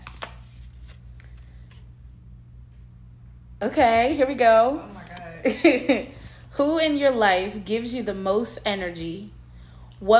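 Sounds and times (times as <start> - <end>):
card being drawn from a question card deck: 0.0 - 1.9
speech: 3.6 - 9.4, 10.0 - 10.1.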